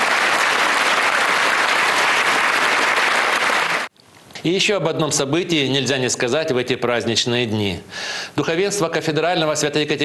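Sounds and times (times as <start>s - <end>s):
audience applause after a stage performance: 0.0s - 3.9s
speech: 4.4s - 10.0s.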